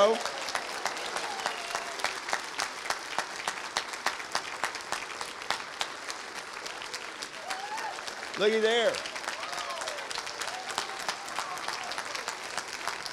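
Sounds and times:
speech: 0:00.0 - 0:00.4, 0:08.4 - 0:09.1
audience applause for the children: 0:00.0 - 0:13.1.

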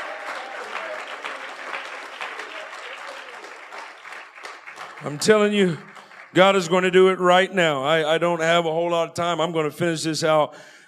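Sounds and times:
audience clapping: 0:00.0 - 0:07.4
speech: 0:05.0 - 0:10.8.

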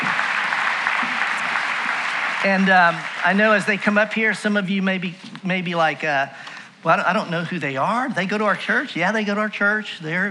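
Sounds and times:
audience applause: 0:00.0 - 0:04.0
speech: 0:02.4 - 0:10.3.

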